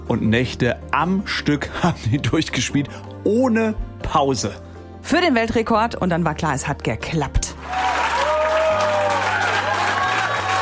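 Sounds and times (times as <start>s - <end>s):
speech: 0.1s - 7.6s
crowd cheering and applauding: 7.6s - 10.6s.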